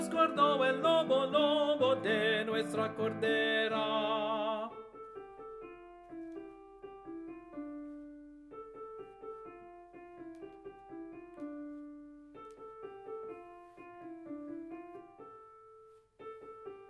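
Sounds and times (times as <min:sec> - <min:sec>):
alto voice singing: 0:00.0 - 0:04.9.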